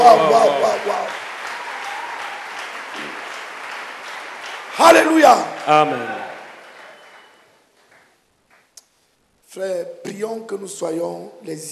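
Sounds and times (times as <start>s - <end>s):
speech: 0.0s - 1.2s, 4.8s - 6.2s, 9.5s - 11.6s
church conference attendees clapping: 0.0s - 8.8s.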